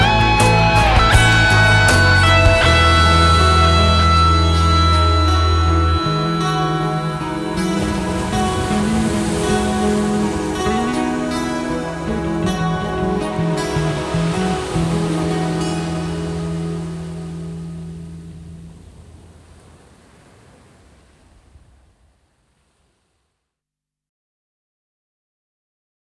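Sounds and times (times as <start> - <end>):
instrumental music: 0.0 - 18.6.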